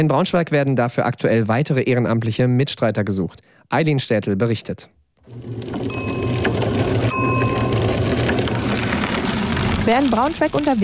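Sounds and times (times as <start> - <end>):
speech: 0.0 - 6.2, 9.8 - 10.8
rickshaw whirring: 5.2 - 10.8
rickshaw bicycle-style bell ringing: 5.9 - 8.3.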